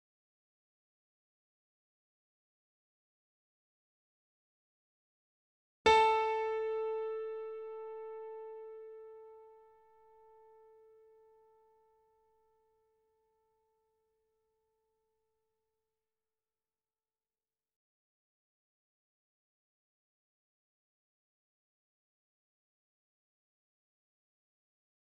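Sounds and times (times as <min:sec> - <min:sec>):
C4 E4 A4 notes on grand piano and digital piano: 0:05.9 - 0:09.8.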